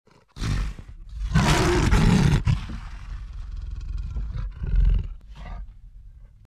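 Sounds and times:
lion snarling and growling: 0.1s - 6.4s.

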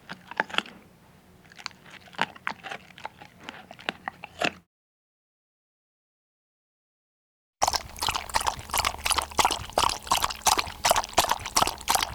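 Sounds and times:
dog eating: 0.0s - 4.6s, 7.6s - 12.1s.

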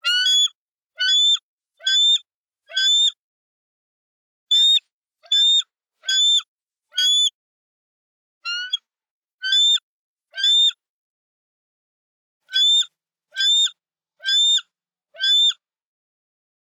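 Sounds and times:
bald eagle chirps: 0.1s - 3.2s, 4.5s - 6.4s, 7.0s - 7.3s, 8.5s - 8.8s, 9.4s - 9.8s, 12.6s - 12.8s, 13.4s - 13.7s, 14.3s - 14.6s, 15.2s - 15.6s.

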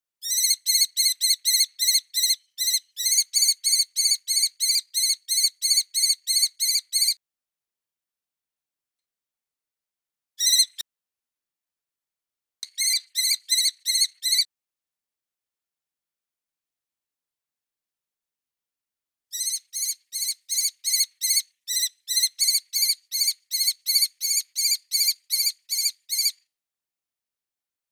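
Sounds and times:
kestrel calling: 0.2s - 7.2s, 12.7s - 14.4s, 19.4s - 26.4s.

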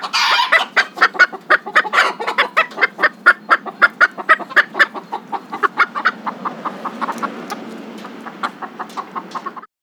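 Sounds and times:
chickens clucking: 0.0s - 9.7s.

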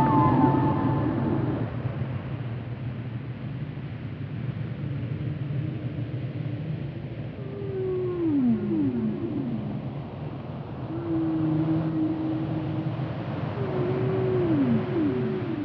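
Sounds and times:
humpback whale singing: 0.0s - 2.0s, 7.2s - 15.6s
low rumbling background: 0.0s - 15.6s.

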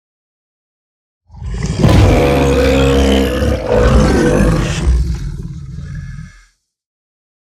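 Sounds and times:
bear roaring: 1.3s - 6.6s.

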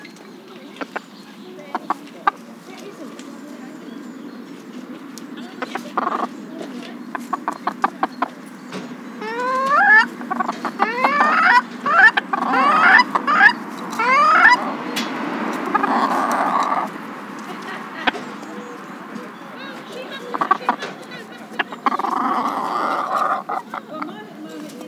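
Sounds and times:
chickens squawking and cackling: 0.6s - 3.2s, 4.4s - 24.8s.

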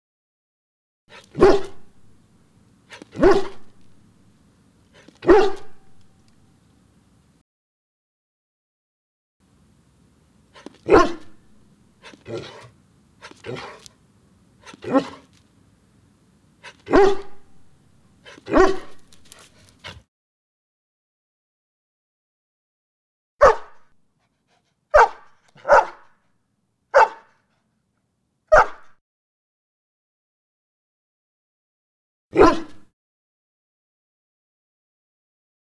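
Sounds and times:
speech: 1.1s - 1.7s
large dog barking: 1.1s - 7.0s, 9.6s - 15.5s, 16.6s - 20.0s, 23.4s - 23.8s, 24.9s - 26.1s, 27.0s - 27.3s, 28.5s - 28.9s, 32.4s - 32.8s.

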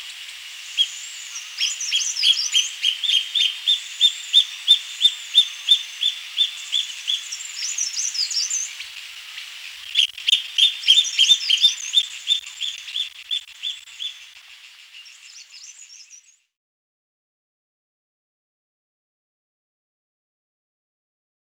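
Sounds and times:
cutia calling sharp repeated notes: 0.0s - 16.3s
faint high twittering: 0.0s - 16.5s.

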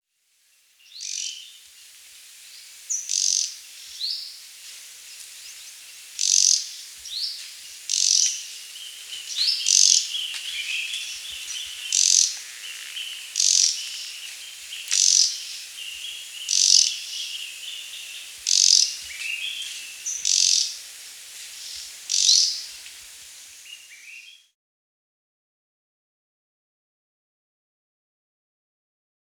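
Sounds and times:
soft steady hiss: 0.1s - 24.5s
red-throated flycatcher rattle calls: 2.9s - 4.2s, 5.1s - 23.1s.

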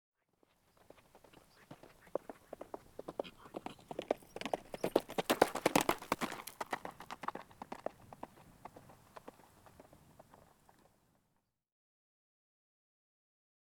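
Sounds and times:
horse cantering on dirt: 0.4s - 11.0s.

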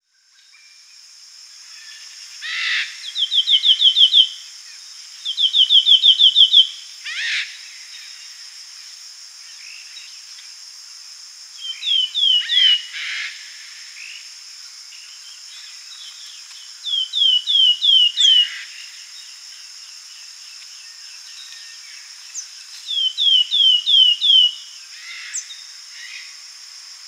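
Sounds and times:
high insect-like hum: 0.0s - 27.0s
slaty flycatcher song: 3.0s - 4.5s, 5.2s - 6.8s, 11.6s - 13.0s, 15.9s - 18.8s, 20.8s - 25.5s.

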